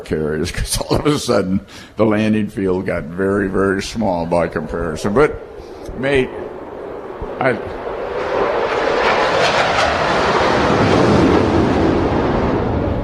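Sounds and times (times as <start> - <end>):
speech: 0.0 - 6.5, 7.4 - 7.8
F-18 fighter jet roaring overhead: 2.6 - 13.0.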